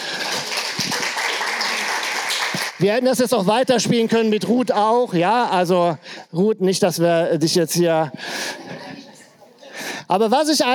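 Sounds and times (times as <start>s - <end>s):
group applause: 0.0s - 3.0s
speech: 2.8s - 8.6s, 10.1s - 10.7s.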